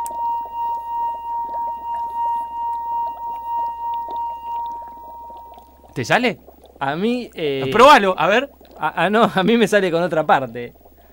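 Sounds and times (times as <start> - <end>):
wine glass singing under a rubbing finger: 0.0 - 5.8
low hum: 0.0 - 11.1
speech: 6.0 - 10.8.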